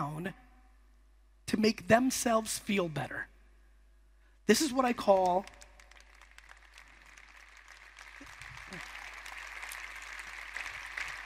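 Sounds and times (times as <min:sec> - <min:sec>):
speech: 0:00.0 - 0:00.4, 0:01.5 - 0:03.3, 0:04.5 - 0:05.6
audience clapping: 0:04.9 - 0:11.2.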